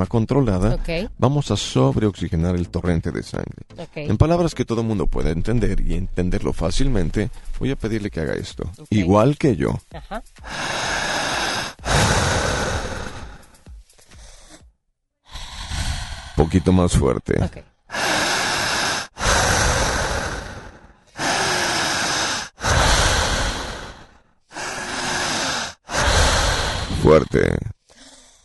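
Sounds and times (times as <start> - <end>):
speech: 0.0 - 11.1, 16.4 - 18.0, 27.1 - 27.8
controlled hyperventilation breathing through the mouth: 7.2 - 8.0, 10.2 - 16.9, 17.9 - 28.4.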